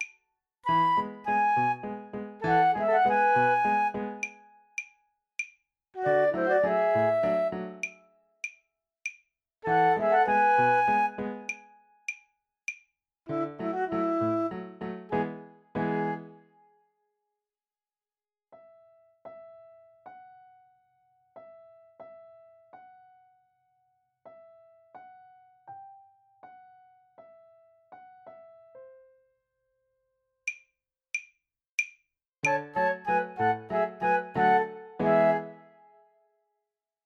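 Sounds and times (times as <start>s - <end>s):
flute: 0.7s - 4.7s, 6.0s - 8.1s, 9.6s - 11.9s, 13.3s - 16.8s, 32.5s - 36.2s.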